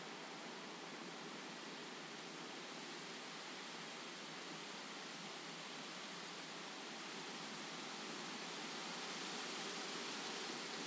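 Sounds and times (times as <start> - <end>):
massive storm wind and rain: 0.0 - 10.8.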